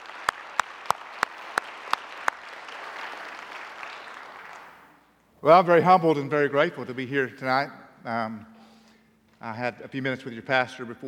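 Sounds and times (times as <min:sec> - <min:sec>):
audience applause for the choir and worship leaders: 0:00.0 - 0:05.0
speech: 0:05.4 - 0:08.5, 0:09.4 - 0:11.0.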